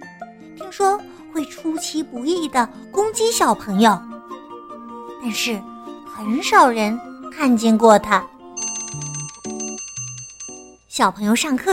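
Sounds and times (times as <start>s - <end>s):
speech: 0.7s - 4.1s, 5.2s - 8.3s, 11.0s - 11.7s
school lunch bell ringing: 8.6s - 10.9s.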